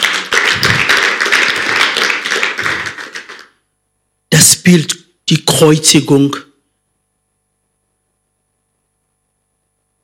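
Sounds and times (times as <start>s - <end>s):
audience applause: 0.0s - 3.6s
speech: 4.6s - 6.5s.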